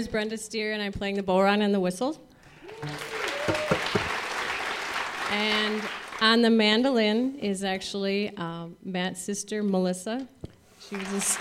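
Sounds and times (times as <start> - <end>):
speech: 0.0 - 3.2, 5.3 - 11.3
audience clapping: 2.5 - 6.4, 10.8 - 11.3.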